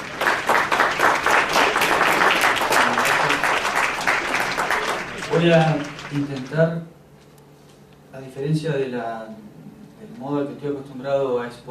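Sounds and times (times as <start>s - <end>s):
audience applause welcoming a lecturer at a psychology conference: 0.0s - 6.8s
speech: 5.4s - 7.0s, 8.2s - 9.6s, 10.2s - 11.6s.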